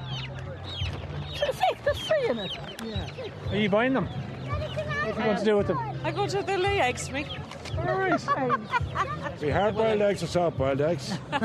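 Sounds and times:
chicks clucking and chirping: 0.0 - 10.3
laughter: 1.4 - 3.4, 7.8 - 10.0, 11.0 - 11.4
speech: 1.4 - 11.4.

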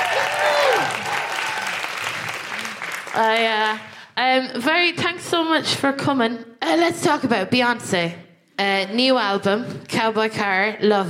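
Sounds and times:
audience whooping: 0.0 - 3.2
speech: 3.2 - 11.0.

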